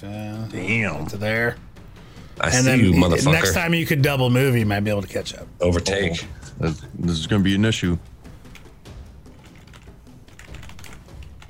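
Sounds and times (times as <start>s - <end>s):
speech: 0.0s - 1.7s, 2.4s - 8.1s
computer keyboard typing emails: 8.4s - 11.4s.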